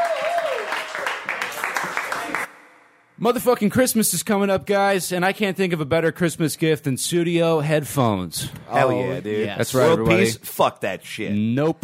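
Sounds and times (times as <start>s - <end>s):
high voiced whoop: 0.0s - 0.8s
audience clapping: 0.0s - 2.5s
speech: 3.2s - 11.8s.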